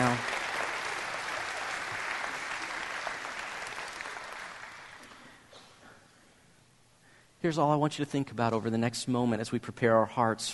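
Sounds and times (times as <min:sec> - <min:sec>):
audience applause: 0:00.0 - 0:05.2
speech: 0:07.4 - 0:10.5.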